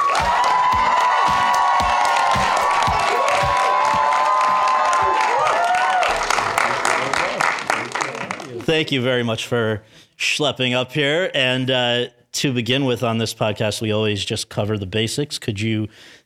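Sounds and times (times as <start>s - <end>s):
audience whooping and shouting: 0.0s - 8.6s
audience applause welcoming a guest at a Chapman University event: 0.0s - 8.7s
speech: 8.7s - 16.2s.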